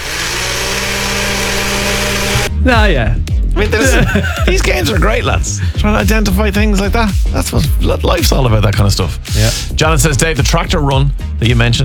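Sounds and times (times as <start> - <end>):
blender running: 0.0 - 2.5
speech: 2.6 - 11.8
laughter: 3.6 - 5.7.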